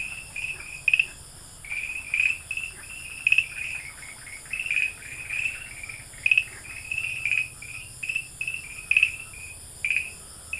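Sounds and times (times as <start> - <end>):
Farmland green tree frog chirping calls: 0.0 - 10.5.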